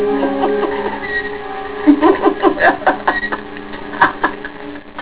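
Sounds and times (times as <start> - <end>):
person laughing: 0.2 - 1.0, 1.9 - 4.6.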